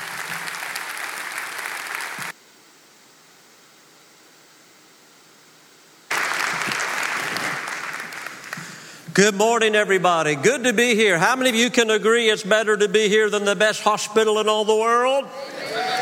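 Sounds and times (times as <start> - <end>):
congregation applause at a church service: 0.0 - 2.4, 6.1 - 9.1
faint hiss: 0.0 - 10.7
speech: 9.2 - 15.6.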